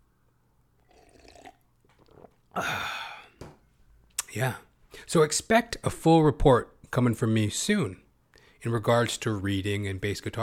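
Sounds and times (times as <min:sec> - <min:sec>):
sip of water: 0:00.8 - 0:03.4
speech: 0:02.6 - 0:03.0, 0:04.4 - 0:08.0, 0:08.6 - 0:10.4.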